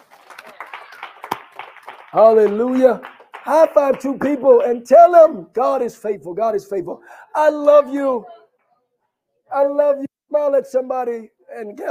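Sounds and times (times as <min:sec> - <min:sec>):
audience hand clap: 0:00.0 - 0:05.1
speech: 0:02.1 - 0:08.4, 0:09.5 - 0:11.8.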